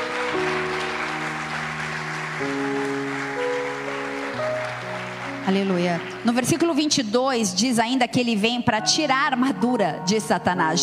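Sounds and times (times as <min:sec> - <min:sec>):
audience applause: 0:00.0 - 0:07.1
sustained keyboard chords: 0:00.0 - 0:10.8
speech: 0:05.5 - 0:10.8.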